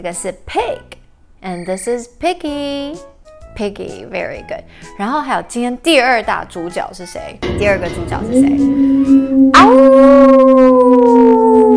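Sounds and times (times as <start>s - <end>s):
speech: 0.0s - 10.2s
wolf howling: 8.3s - 11.7s.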